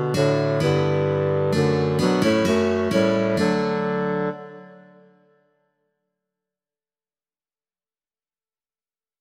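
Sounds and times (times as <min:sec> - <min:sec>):
guitar: 0:00.0 - 0:04.4
bassoon: 0:00.0 - 0:05.3
clarinet: 0:00.0 - 0:05.4.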